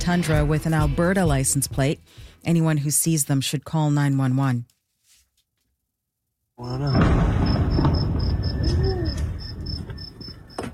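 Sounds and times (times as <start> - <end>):
speech: 0.0 - 4.8, 6.6 - 7.4
explosion in northern Iran: 6.7 - 10.2.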